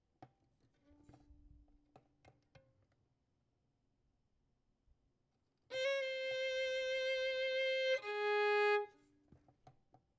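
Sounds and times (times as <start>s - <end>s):
violin: 5.7s - 9.2s.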